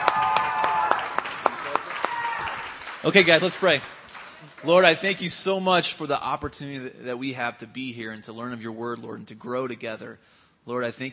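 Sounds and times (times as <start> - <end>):
audience clapping to welcome the band at a student gathering: 0.0 - 5.6
speech: 3.0 - 4.0, 4.6 - 11.1.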